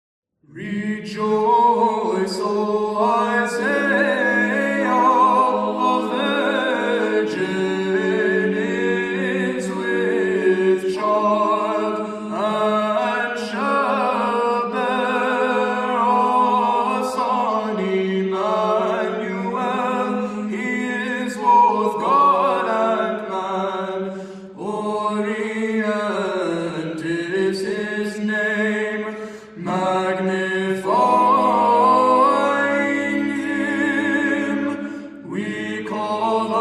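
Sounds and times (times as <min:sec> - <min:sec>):
Byzantine chant: 0:00.4 - 0:36.6.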